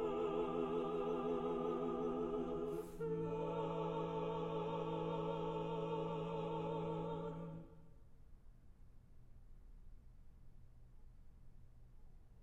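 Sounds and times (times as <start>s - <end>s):
vocal quartet singing chansons: 0.0s - 7.8s.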